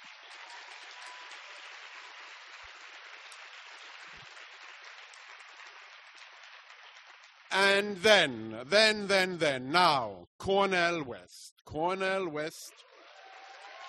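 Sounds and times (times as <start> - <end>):
crowd applauding: 0.0 - 9.2, 12.7 - 13.8
speech: 7.5 - 12.9.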